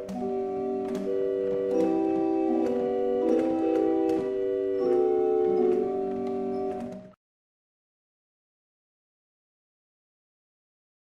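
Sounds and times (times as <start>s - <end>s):
barrel organ: 0.0s - 7.2s.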